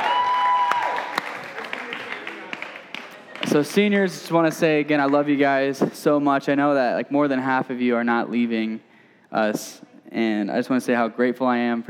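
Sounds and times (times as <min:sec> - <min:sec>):
crowd applauding: 0:00.0 - 0:04.1
speech: 0:03.5 - 0:11.8.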